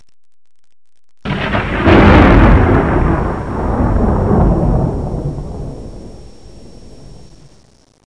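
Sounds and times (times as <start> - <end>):
thunder: 1.3 - 7.6.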